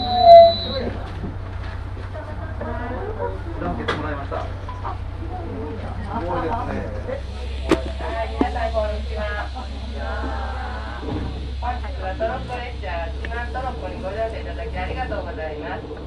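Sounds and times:
brief high tone: 0:00.0 - 0:00.9
Shimanto Torokko No. 2 train rumbling on the Yodo Line: 0:00.0 - 0:16.0
many voices chattering aboard the train: 0:00.0 - 0:16.0.

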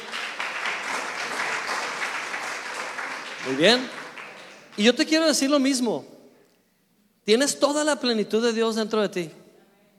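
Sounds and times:
audience applause: 0:00.0 - 0:04.9
speech: 0:03.4 - 0:04.0, 0:04.8 - 0:06.1, 0:07.2 - 0:09.4.

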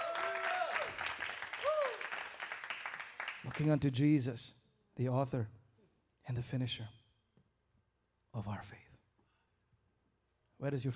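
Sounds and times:
audience clapping hands: 0:00.0 - 0:03.9
speech: 0:03.6 - 0:05.6, 0:06.3 - 0:07.0, 0:08.4 - 0:08.9, 0:10.6 - 0:10.9.

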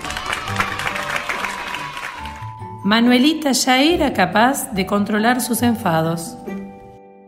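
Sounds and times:
group applauding: 0:00.0 - 0:02.8
speech: 0:02.8 - 0:06.4.

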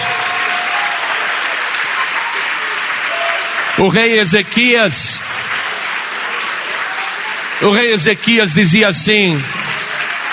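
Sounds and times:
audience applauding: 0:00.0 - 0:10.3
speech: 0:03.8 - 0:05.6, 0:07.6 - 0:09.6.

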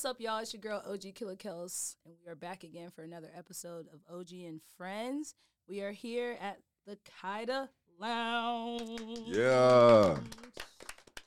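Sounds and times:
speech: 0:00.0 - 0:10.7
few people clapping: 0:08.7 - 0:11.2.

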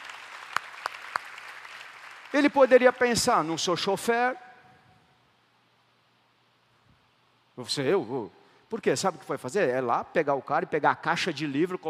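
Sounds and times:
audience applauding: 0:00.0 - 0:03.2
speech: 0:02.3 - 0:04.4, 0:07.6 - 0:11.8.

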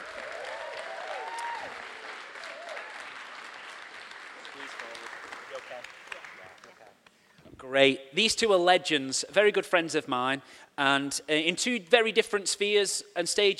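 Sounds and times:
audience applauding as two guests are welcomed onto a stage: 0:00.0 - 0:06.9
speech: 0:07.6 - 0:13.5.

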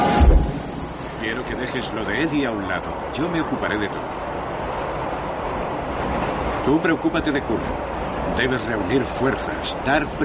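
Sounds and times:
subway train rumbling along in motion: 0:00.0 - 0:10.2
speech: 0:01.4 - 0:04.4, 0:06.6 - 0:10.2.

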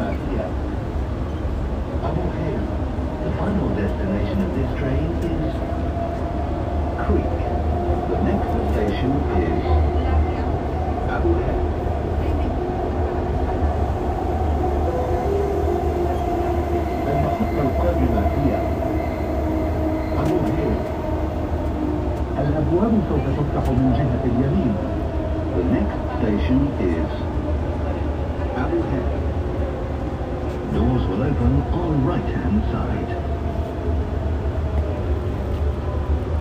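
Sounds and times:
metro train rumble: 0:00.0 - 0:36.3.

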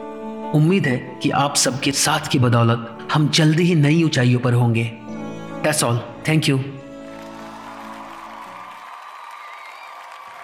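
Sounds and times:
speech: 0:00.5 - 0:06.8
thunderous applause from a crowd: 0:06.9 - 0:10.4.

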